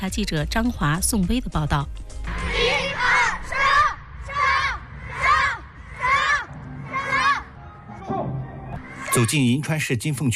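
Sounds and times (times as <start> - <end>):
speech: 0.0 - 2.7, 9.2 - 10.3
primary schoolchildren shouting in unison during martial arts drills: 2.3 - 7.6.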